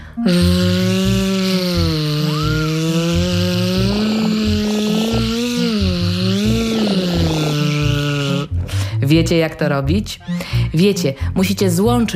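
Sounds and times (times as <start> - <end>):
speech: 0.2 - 0.8, 9.1 - 12.1
voice imitating a buzzing wasp: 0.2 - 8.5.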